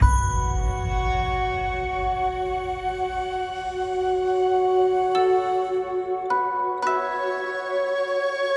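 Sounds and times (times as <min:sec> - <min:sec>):
music intro: 0:00.0 - 0:08.4.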